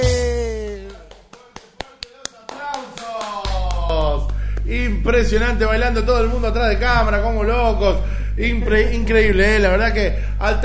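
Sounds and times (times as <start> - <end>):
clapping along to cumbia: 0.7 - 4.8
speech: 5.0 - 10.6.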